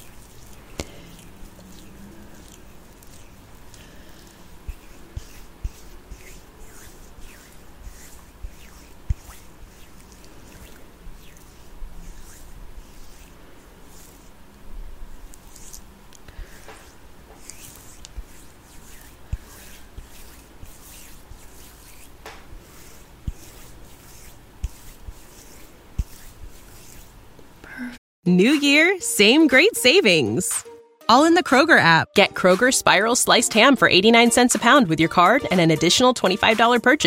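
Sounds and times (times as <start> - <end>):
gua sha facial tool scraping over skin: 0.0 - 27.6
speech: 28.2 - 37.0.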